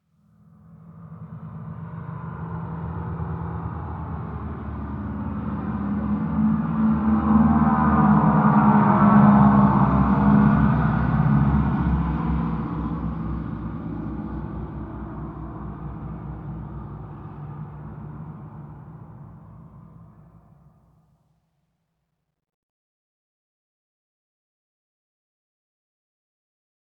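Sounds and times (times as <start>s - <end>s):
pass-by in an airfield hangar: 1.4s - 20.7s.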